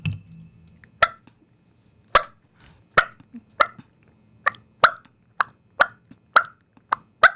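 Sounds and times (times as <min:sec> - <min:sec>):
faint low hum: 0:00.0 - 0:07.3
turkey call cutting clucks: 0:01.0 - 0:01.2, 0:02.1 - 0:02.4, 0:03.0 - 0:03.8, 0:04.4 - 0:07.3.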